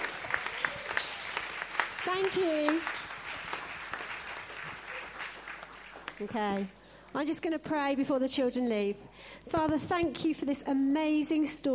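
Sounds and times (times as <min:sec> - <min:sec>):
audience clapping: 0:00.0 - 0:07.1
speech: 0:02.0 - 0:03.0, 0:06.2 - 0:11.7.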